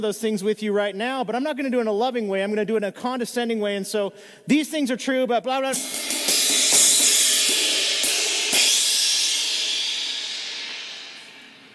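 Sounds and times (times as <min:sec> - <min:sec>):
speech: 0:00.0 - 0:06.4
loud clanging cymbal: 0:05.7 - 0:11.7.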